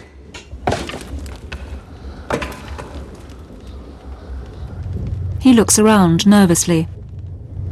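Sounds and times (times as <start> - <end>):
wood thrown onto the fire in a basement boiler: 0.3 - 3.4
speech: 5.4 - 7.0.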